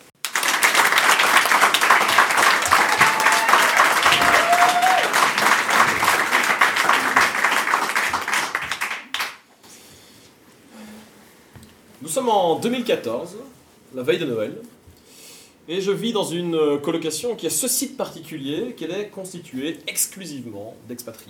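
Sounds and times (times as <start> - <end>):
crowd applauding: 0.1 - 9.4
whistle or cheer: 2.9 - 5.2
speech: 12.2 - 14.8, 15.7 - 21.2.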